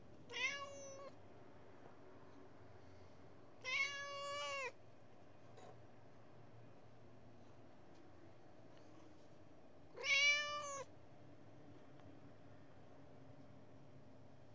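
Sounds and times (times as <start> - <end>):
Persian cat giving a nasal meow: 0.3 - 1.2, 3.6 - 4.8, 10.0 - 10.9.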